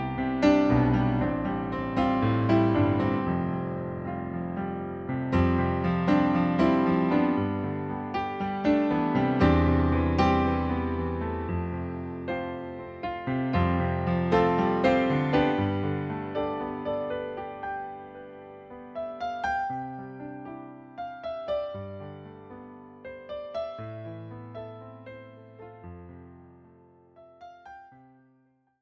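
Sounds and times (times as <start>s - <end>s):
piano playback: 0.0s - 28.2s.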